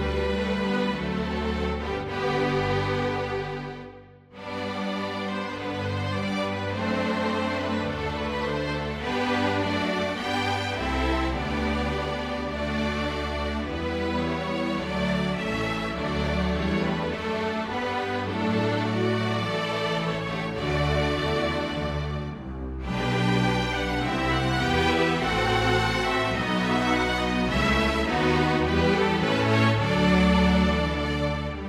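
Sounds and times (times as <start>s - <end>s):
traditional string orchestra or quintet playing: 0.0s - 31.6s.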